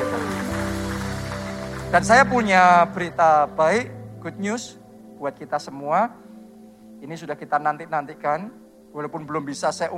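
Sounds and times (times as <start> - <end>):
audience applauding: 0.0 - 3.2
low sustained musical tones: 0.0 - 9.9
speech: 1.9 - 6.2, 7.0 - 9.9.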